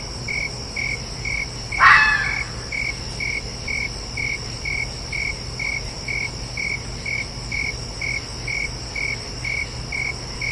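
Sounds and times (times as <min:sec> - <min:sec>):
crickets chirping: 0:00.0 - 0:10.5
red fox shrieking: 0:01.8 - 0:02.8.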